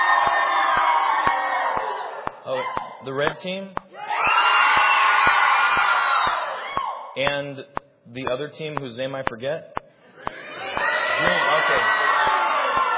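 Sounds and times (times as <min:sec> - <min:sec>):
crowd cheering: 0:00.0 - 0:07.2, 0:10.1 - 0:12.9
speech: 0:03.0 - 0:03.8, 0:07.2 - 0:09.8, 0:11.2 - 0:12.0.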